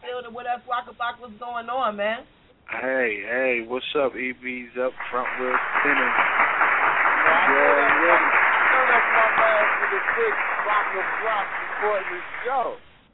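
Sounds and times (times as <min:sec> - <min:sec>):
speech: 0:00.4 - 0:06.4, 0:07.3 - 0:12.9
laughter: 0:02.7 - 0:12.6
crowd applauding: 0:04.8 - 0:12.9.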